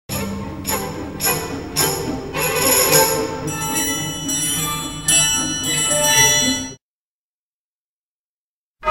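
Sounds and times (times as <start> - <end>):
tambourine: 0.1 - 6.8
triangle: 0.1 - 6.8.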